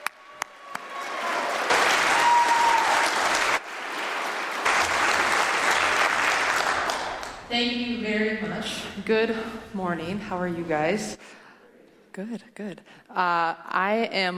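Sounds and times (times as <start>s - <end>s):
audience applause: 0.0s - 7.5s
whistle or cheer: 2.1s - 3.1s
speech: 7.5s - 11.4s, 12.2s - 14.3s.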